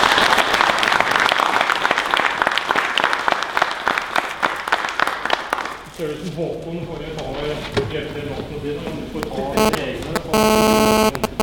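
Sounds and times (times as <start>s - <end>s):
audience applause: 0.0s - 5.8s
speech: 6.0s - 11.2s.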